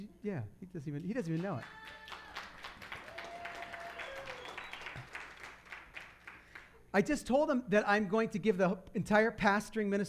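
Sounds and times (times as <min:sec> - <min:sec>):
speech: 0:00.0 - 0:02.1, 0:06.9 - 0:10.0
audience clapping: 0:01.4 - 0:06.8.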